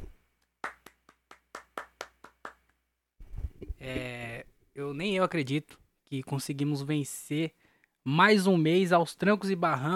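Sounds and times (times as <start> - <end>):
hand clapping: 0.0 - 2.8
speech: 3.8 - 9.9.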